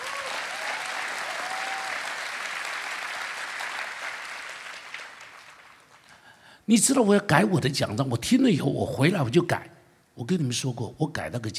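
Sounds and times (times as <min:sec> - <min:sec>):
audience applause: 0:00.0 - 0:06.2
speech: 0:06.7 - 0:11.5.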